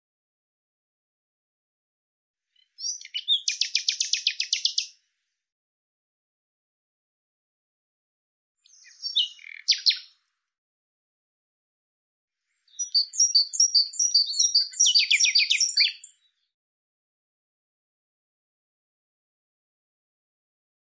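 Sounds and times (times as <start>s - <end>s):
bird singing buzzy chirps: 2.6s - 4.9s, 8.7s - 10.1s, 12.6s - 16.3s.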